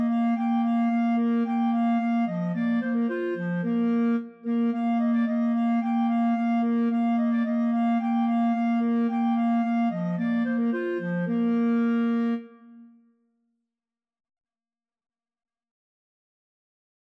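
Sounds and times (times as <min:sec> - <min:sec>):
clarinet trio playing: 0:00.0 - 0:12.5.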